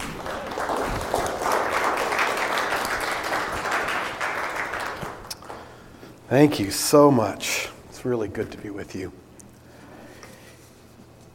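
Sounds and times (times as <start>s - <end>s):
audience applause welcoming a speaker: 0.0s - 5.8s
speech: 6.3s - 9.2s.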